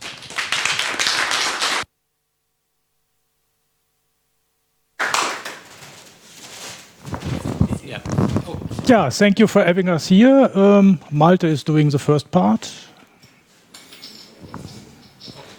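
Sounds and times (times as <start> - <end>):
audience applause welcoming speakers: 0.0 - 1.9, 5.0 - 5.8
speech: 8.0 - 12.9.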